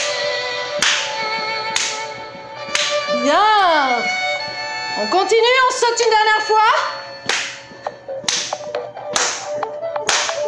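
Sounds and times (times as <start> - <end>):
steady tone: 0.0 - 10.4
people clapping hands during a jumping exercise: 1.8 - 2.1, 2.8 - 3.0, 8.3 - 8.6, 9.2 - 10.4
speech: 5.0 - 7.0.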